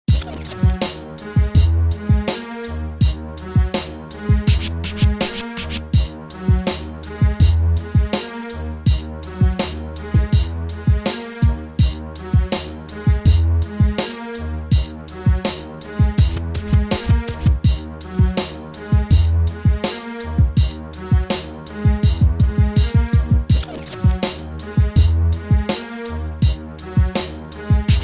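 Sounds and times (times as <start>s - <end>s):
space age beat: 0.1s - 28.0s.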